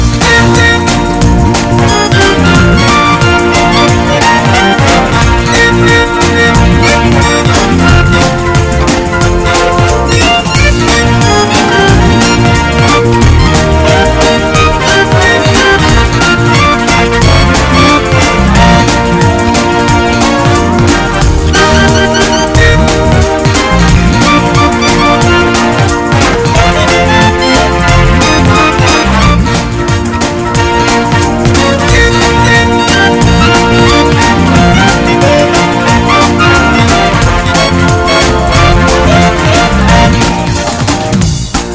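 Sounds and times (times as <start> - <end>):
fast gospel shuffle: 0.0 - 41.7.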